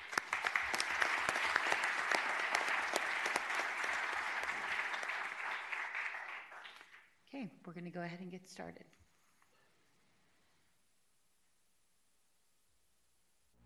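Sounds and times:
many hands clapping: 0.0 - 7.2
speech: 7.6 - 9.0.

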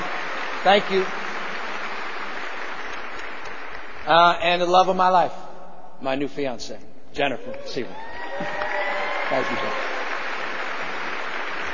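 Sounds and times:
audience applause: 0.0 - 4.4, 8.0 - 11.7
speech: 0.6 - 1.2, 4.1 - 5.4, 6.0 - 8.6, 9.3 - 9.9.

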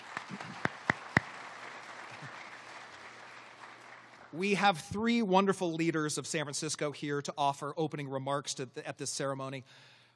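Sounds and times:
scattered hand claps: 0.0 - 4.4
speech: 4.4 - 10.0.

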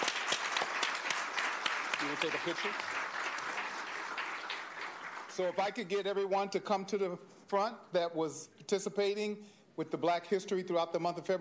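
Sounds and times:
crowd applause: 0.0 - 5.8
speech: 2.0 - 3.0, 5.4 - 11.3.

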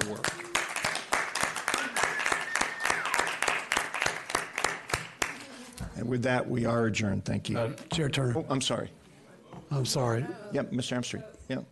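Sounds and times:
board members applauding county staff: 0.0 - 5.6
speech: 0.1 - 0.4, 6.0 - 9.0, 9.7 - 11.7.

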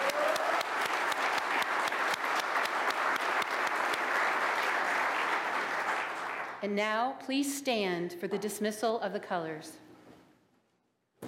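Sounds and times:
audience applause: 0.0 - 6.6
speech: 6.6 - 9.8.

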